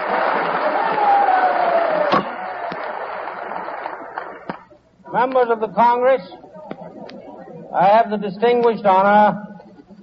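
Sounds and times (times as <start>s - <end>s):
applause from members of Congress: 0.0s - 4.7s
speech: 5.1s - 6.4s, 7.7s - 9.4s.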